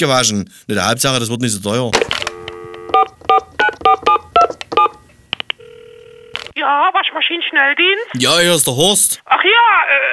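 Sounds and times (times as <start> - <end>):
speech: 0.0 - 2.2, 6.6 - 10.1
telephone number being dialed: 2.0 - 6.6.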